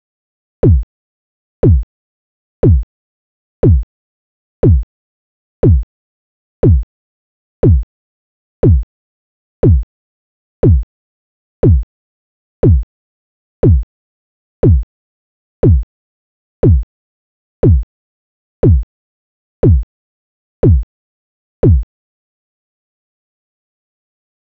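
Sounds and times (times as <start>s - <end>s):
kick drum: 0.6s - 0.9s, 1.6s - 1.9s, 2.6s - 2.9s, 3.6s - 3.9s, 4.6s - 4.9s, 5.6s - 5.9s, 6.6s - 6.9s, 7.6s - 7.9s, 8.6s - 8.9s, 9.6s - 9.9s, 10.6s - 10.9s, 11.6s - 11.9s, 12.6s - 12.9s, 13.6s - 13.9s, 14.6s - 14.9s, 15.6s - 15.9s, 16.6s - 16.9s, 17.6s - 17.9s, 18.6s - 18.9s, 19.6s - 19.9s, 20.6s - 20.9s, 21.6s - 21.9s.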